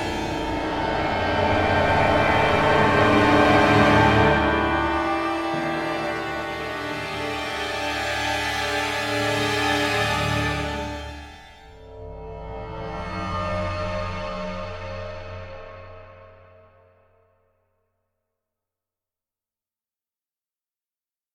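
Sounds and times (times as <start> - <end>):
danger alert music clusters: 0.0 - 11.6.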